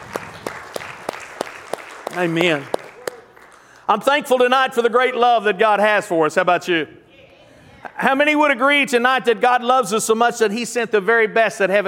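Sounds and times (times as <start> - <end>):
audience hand clapping: 0.0 - 4.1
speech: 2.1 - 2.8, 3.9 - 7.0, 7.9 - 11.8.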